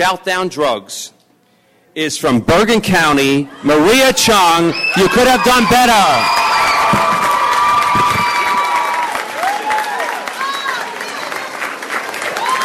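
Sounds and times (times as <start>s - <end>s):
speech: 0.0s - 1.2s, 2.0s - 7.1s
cheers and high-pitched whoops and shouts: 4.7s - 11.5s, 12.2s - 12.6s
crowd applauding: 4.9s - 12.6s.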